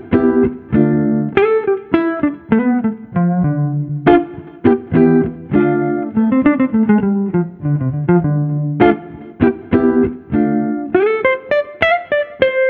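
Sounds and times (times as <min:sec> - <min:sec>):
street guitar chill jazz: 0:00.0 - 0:12.6.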